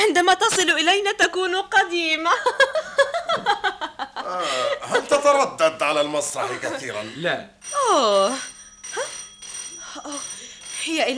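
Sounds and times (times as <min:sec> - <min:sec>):
speech: 0:00.0 - 0:03.5, 0:04.3 - 0:09.1, 0:10.0 - 0:11.1
laughter: 0:02.4 - 0:05.4, 0:06.1 - 0:07.2
telephone ringing: 0:07.6 - 0:11.1.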